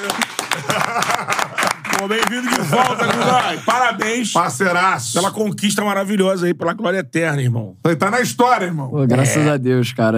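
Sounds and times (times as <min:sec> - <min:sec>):
laughter: 0:00.0 - 0:04.1
clapping: 0:00.0 - 0:04.2
speech: 0:02.0 - 0:10.1.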